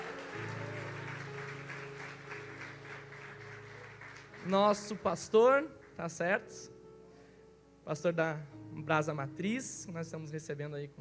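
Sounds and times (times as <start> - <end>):
audience applause: 0.0 - 5.0
speech: 4.4 - 6.8, 7.9 - 11.0.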